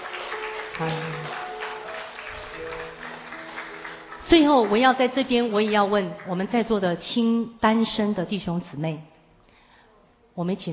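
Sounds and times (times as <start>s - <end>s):
church congregation applauding during a service: 0.0s - 7.0s
speech: 0.8s - 1.4s, 4.3s - 9.1s, 10.4s - 10.7s.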